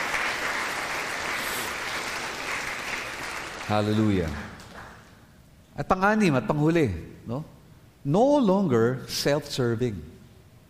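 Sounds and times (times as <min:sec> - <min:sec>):
church congregation applauding: 0:00.0 - 0:05.2
speech: 0:03.7 - 0:04.5, 0:05.8 - 0:10.1.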